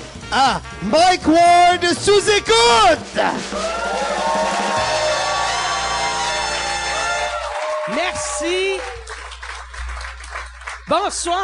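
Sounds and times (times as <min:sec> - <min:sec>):
speech: 0:00.3 - 0:03.9, 0:07.9 - 0:08.9, 0:10.9 - 0:11.4
audience applause: 0:03.5 - 0:11.2.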